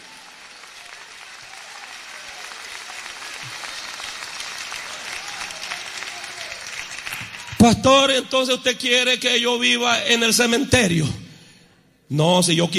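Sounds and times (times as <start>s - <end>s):
audience applauding: 0.0s - 8.1s
speech: 7.6s - 11.2s, 12.1s - 12.7s.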